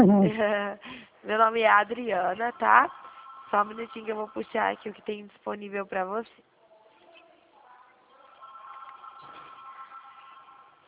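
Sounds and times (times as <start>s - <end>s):
speech: 0.0s - 6.5s
telephone ringing: 1.9s - 5.2s, 8.1s - 10.8s.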